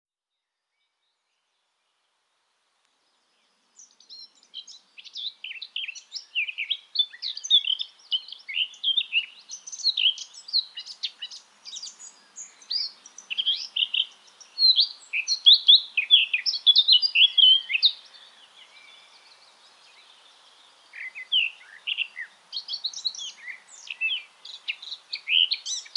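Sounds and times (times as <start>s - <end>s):
hiss: 0.7s - 25.9s
Eurasian blackcap singing: 3.8s - 18.2s, 21.0s - 25.9s.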